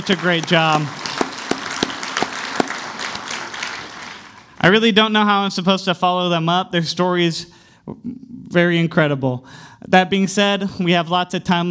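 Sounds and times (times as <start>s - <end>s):
speech: 0.0s - 1.0s, 4.6s - 11.6s
audience applauding: 0.0s - 4.6s.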